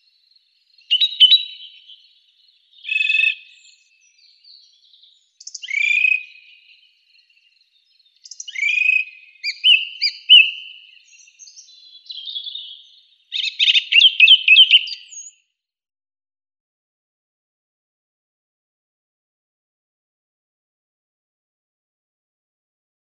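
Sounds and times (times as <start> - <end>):
song thrush singing loud varied phrases: 0.0 - 15.5.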